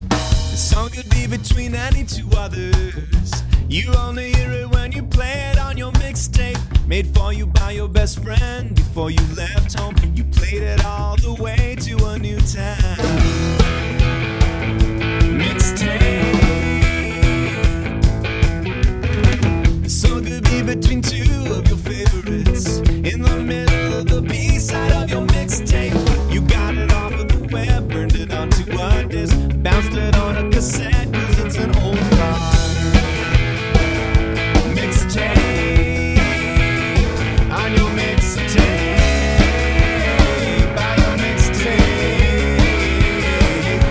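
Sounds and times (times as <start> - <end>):
backing music: 0.0 - 43.8.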